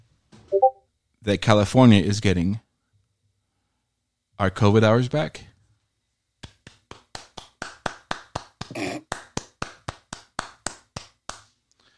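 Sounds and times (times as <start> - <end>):
speech: 0.5 - 2.6, 4.4 - 5.5
hand clapping: 6.4 - 11.6.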